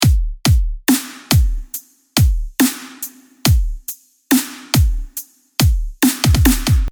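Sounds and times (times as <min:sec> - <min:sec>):
drum drop: 0:00.0 - 0:02.8, 0:04.7 - 0:06.9.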